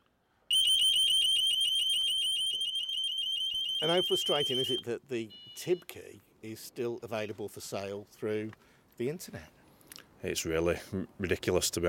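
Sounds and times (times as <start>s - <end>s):
door intruder alarm blaring a high-pitched electronic warbling tone: 0.5s - 5.8s
speech: 3.8s - 9.6s, 10.2s - 11.8s.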